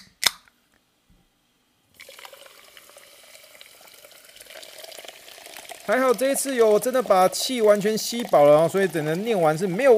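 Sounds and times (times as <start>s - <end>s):
sharp click: 0.0s - 0.6s
sparkling water fizzing: 2.0s - 9.9s
speech: 5.9s - 9.9s.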